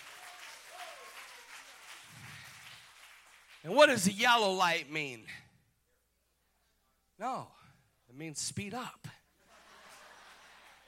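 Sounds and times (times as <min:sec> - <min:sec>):
audience clapping: 0:00.0 - 0:04.1, 0:09.9 - 0:10.8
speech: 0:03.6 - 0:05.4, 0:07.2 - 0:09.2
laughter: 0:09.3 - 0:10.8.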